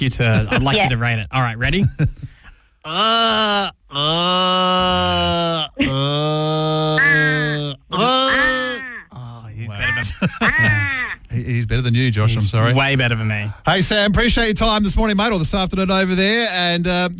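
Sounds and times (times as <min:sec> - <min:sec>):
speech: 0:00.0 - 0:08.6, 0:09.7 - 0:17.1
laughter: 0:00.2 - 0:01.0, 0:05.8 - 0:06.2, 0:09.6 - 0:11.2
person imitating Australian crow caws: 0:02.9 - 0:11.2.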